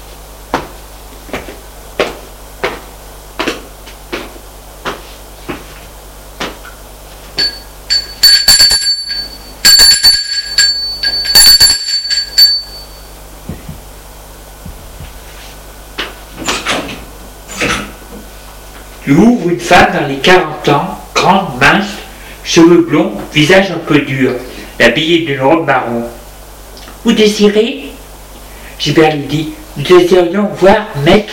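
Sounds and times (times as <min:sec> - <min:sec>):
steady evenly spaced footsteps: 0:00.5 - 0:07.6, 0:14.6 - 0:16.2
doorbell ringing at a front door: 0:07.4 - 0:13.1
soft thuds: 0:14.6 - 0:15.2
speech: 0:19.1 - 0:21.9, 0:22.6 - 0:26.2, 0:27.0 - 0:27.9, 0:28.8 - 0:31.3.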